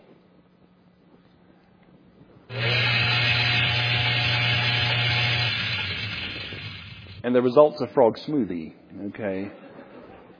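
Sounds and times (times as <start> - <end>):
blender running: 2.5 - 7.2
speech: 7.3 - 9.6.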